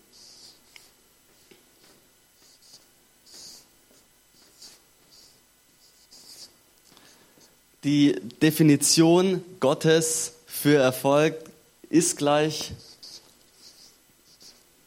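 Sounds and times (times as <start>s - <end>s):
handwriting pen strokes: 2.4s - 3.6s, 4.4s - 6.5s, 12.6s - 14.8s
speech: 7.8s - 12.9s.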